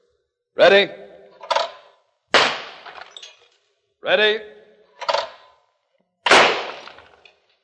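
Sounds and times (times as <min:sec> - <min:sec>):
spoken word: 0:00.6 - 0:00.9, 0:04.0 - 0:04.5
speech: 0:00.6 - 0:01.0, 0:04.0 - 0:04.6
shotgun blasts: 0:02.3 - 0:03.1, 0:06.3 - 0:07.2.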